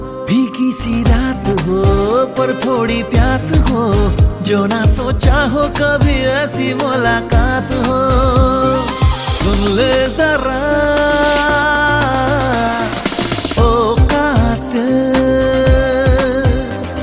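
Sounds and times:
Bollywood ringtone music: 0:00.3 - 0:17.0.

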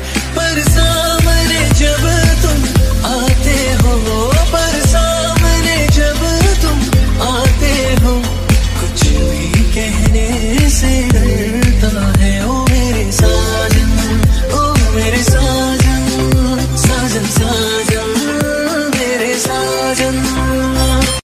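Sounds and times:
Bollywood DJ ringtone: 0:00.2 - 0:21.2.

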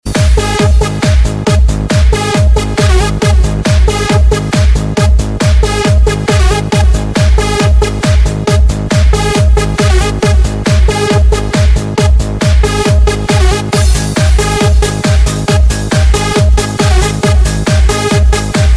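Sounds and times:
bassmix ringtone: 0:00.0 - 0:18.7.

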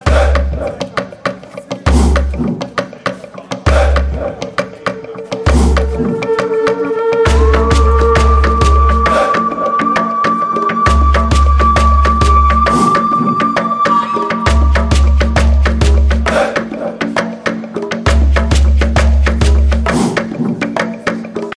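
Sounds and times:
tribal dancers ringtone music: 0:00.0 - 0:21.5.

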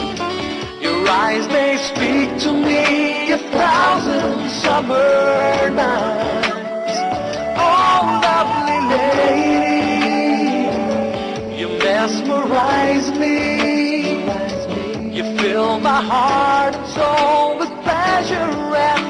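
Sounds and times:
romantic English song ringtone: 0:00.0 - 0:19.0.

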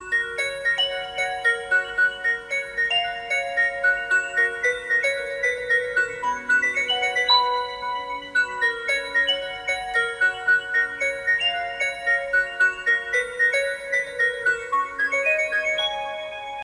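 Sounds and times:
phone ringtone: 0:00.0 - 0:16.6.

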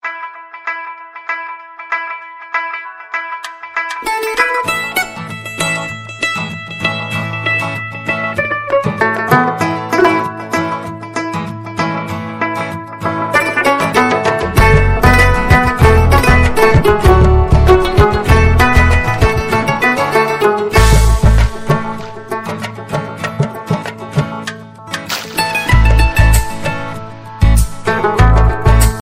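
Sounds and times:
musical guitar ringtone: 0:00.0 - 0:24.3, 0:24.9 - 0:29.0.

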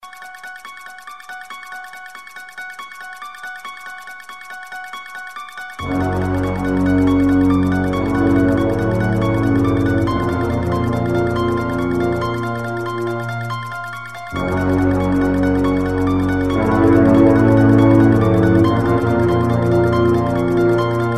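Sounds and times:
ringtone: 0:00.0 - 0:21.1.

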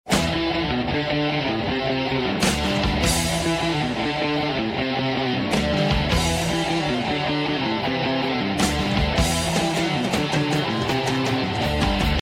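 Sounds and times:
heavy metal ringtone: 0:00.2 - 0:12.1.

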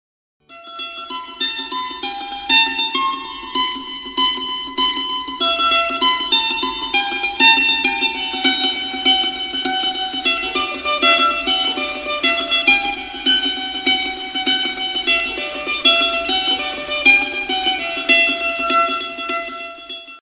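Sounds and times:
guitar ringtone: 0:00.5 - 0:20.1.

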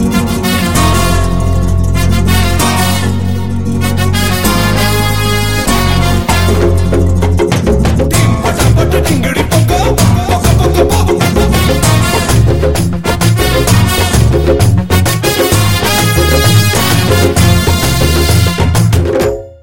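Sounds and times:
Bollywood remix ringtone: 0:00.2 - 0:19.6.

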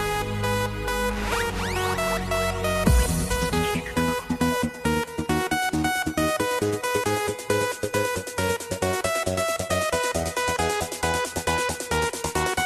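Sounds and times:
dance music ringtone: 0:00.2 - 0:12.6.

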